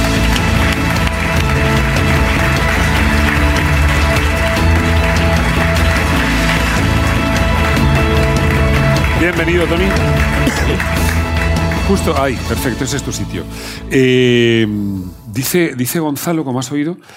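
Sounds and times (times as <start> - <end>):
audience applause: 0.0 - 13.0
music playing: 0.0 - 16.7
speech: 9.4 - 11.1, 11.9 - 17.1.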